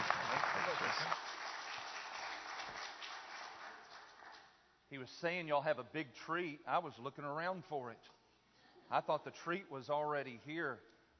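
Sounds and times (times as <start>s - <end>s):
audience applause: 0.0s - 4.5s
speech: 4.9s - 8.2s, 8.9s - 10.9s.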